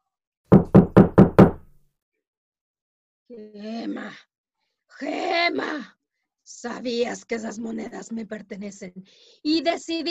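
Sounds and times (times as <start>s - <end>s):
knocking on a door: 0.5s - 1.7s
speech: 3.3s - 4.3s, 5.0s - 10.0s.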